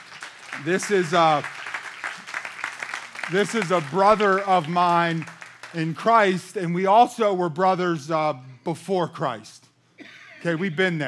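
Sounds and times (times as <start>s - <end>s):
audience applause: 0.0s - 6.1s
speech: 0.6s - 1.6s, 3.3s - 9.6s, 10.4s - 11.0s.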